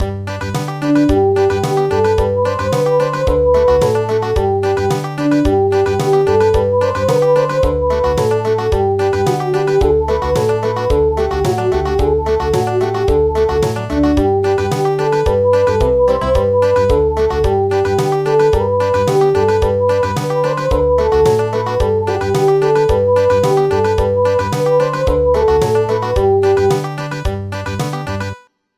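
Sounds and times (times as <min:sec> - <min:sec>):
country music: 0:00.0 - 0:28.4.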